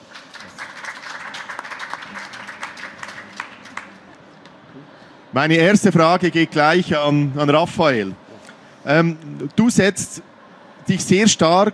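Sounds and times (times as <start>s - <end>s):
audience applause: 0.0s - 4.2s
speech: 5.3s - 8.2s, 8.8s - 10.3s, 10.9s - 11.7s.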